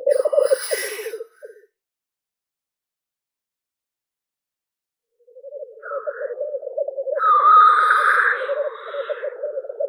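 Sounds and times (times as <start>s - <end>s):
black grouse Tetrao tetrix calling: 0.1s - 1.5s, 5.8s - 9.8s.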